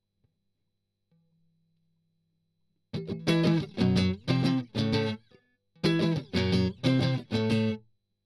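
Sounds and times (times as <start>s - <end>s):
strummed octaves: 3.0s - 5.2s, 5.8s - 7.8s.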